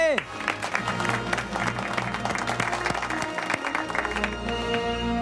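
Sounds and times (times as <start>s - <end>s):
loud applause: 0.0s - 5.1s.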